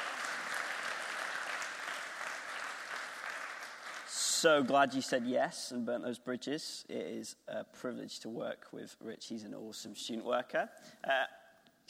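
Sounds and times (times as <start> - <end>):
group applauding: 0.0 - 5.3
speech: 4.4 - 11.8.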